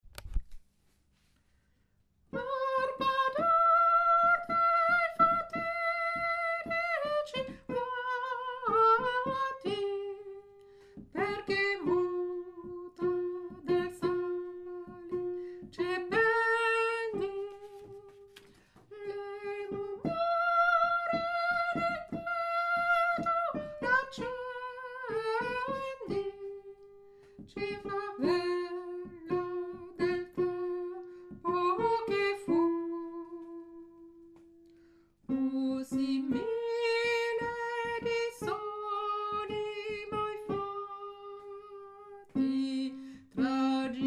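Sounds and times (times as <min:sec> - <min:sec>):
soprano singing: 0:02.3 - 0:18.3, 0:18.9 - 0:34.2, 0:35.3 - 0:44.0.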